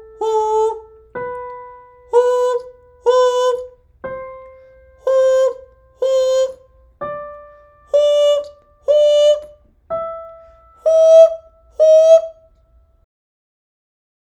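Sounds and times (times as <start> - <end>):
relaxed falsetto voice: 0.0 - 1.0, 2.1 - 3.8, 5.0 - 6.6, 7.9 - 9.5, 10.8 - 12.4.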